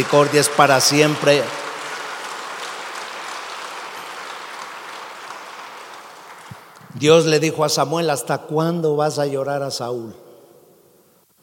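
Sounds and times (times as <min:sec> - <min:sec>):
speech: 0:00.0 - 0:01.6, 0:07.0 - 0:10.2
audience applause: 0:00.0 - 0:06.9.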